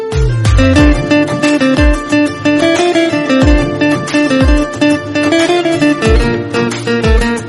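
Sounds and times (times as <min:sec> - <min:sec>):
instrumental ringtone: 0:00.1 - 0:07.3.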